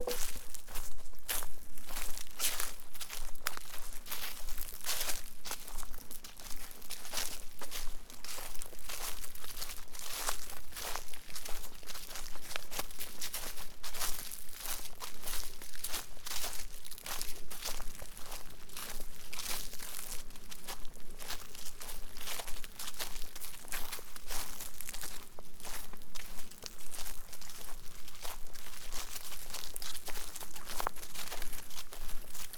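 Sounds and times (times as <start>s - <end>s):
walking on leaves in a forest: 0.0s - 32.5s.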